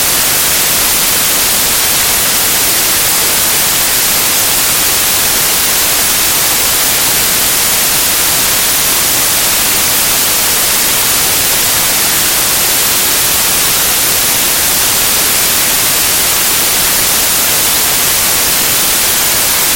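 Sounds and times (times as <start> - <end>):
white noise: 0.0 - 19.7.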